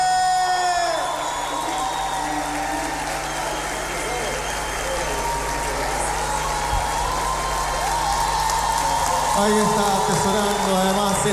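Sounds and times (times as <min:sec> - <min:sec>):
audience applauding and cheering at an award presentation at a folk music festival in Patagonia: 0:00.0 - 0:11.3
speech: 0:09.4 - 0:10.5.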